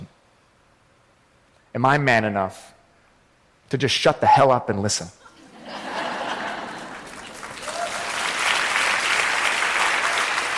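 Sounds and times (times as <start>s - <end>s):
speech: 1.8s - 2.8s, 3.7s - 5.2s
laughter: 5.2s - 8.1s
audience applause: 6.2s - 10.5s.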